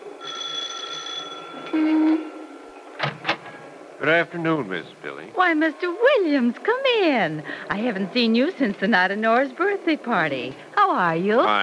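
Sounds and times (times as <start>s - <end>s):
doorbell ringing with a bright metallic tone: 0.2s - 2.8s
speech: 1.7s - 2.3s, 4.0s - 11.6s.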